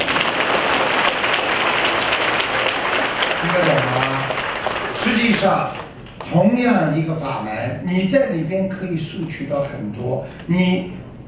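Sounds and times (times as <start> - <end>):
audience applause at a Buddhist dharma talk: 0.0 - 6.3
speech: 5.4 - 11.0.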